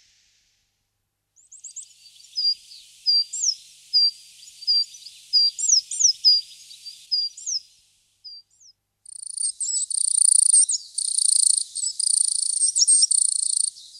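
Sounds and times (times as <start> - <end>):
coal tit calls: 1.5 - 13.9.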